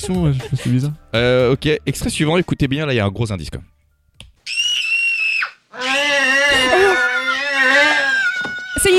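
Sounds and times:
speech: 0.0 - 3.7
piercing high-pitched scream from a film scene: 4.4 - 8.9.

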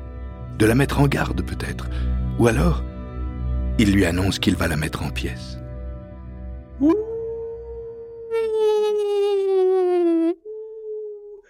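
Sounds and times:
speech: 0.6 - 3.0, 3.8 - 5.6, 6.8 - 7.1
person imitating a wolf howl: 6.8 - 11.4.

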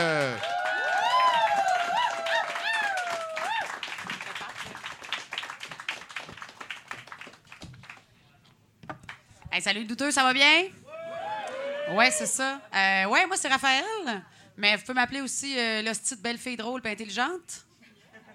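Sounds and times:
audience applause: 0.0 - 8.1
speech: 9.6 - 10.8, 11.9 - 17.7.

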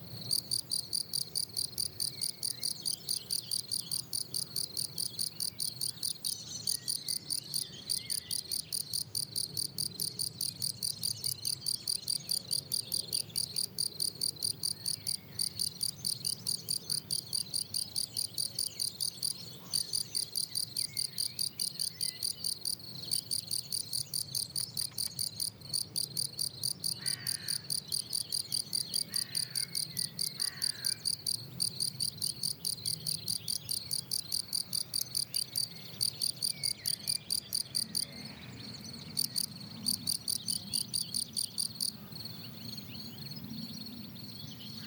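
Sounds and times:
Gryllus campestris chirping on the Plateau de Lesches en Diois: 0.0 - 44.8.

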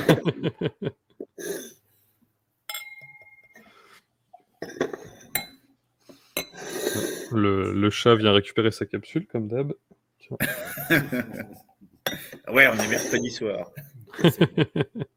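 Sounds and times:
speech: 0.2 - 1.6, 7.3 - 15.1
drinking glasses being handled and clinked: 2.7 - 3.7, 12.1 - 13.4.

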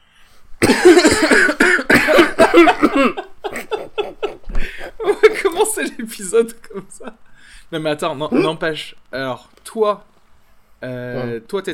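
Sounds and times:
cough: 0.6 - 3.2
laughter: 2.0 - 7.2
speech: 6.2 - 10.1, 10.8 - 11.7.

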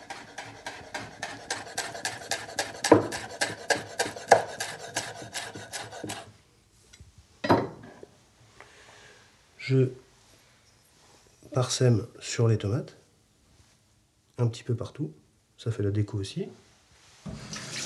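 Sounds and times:
knife finely mincing rolled basil leaves: 0.0 - 6.3
speech: 9.7 - 10.0, 11.6 - 13.0, 14.4 - 16.6.

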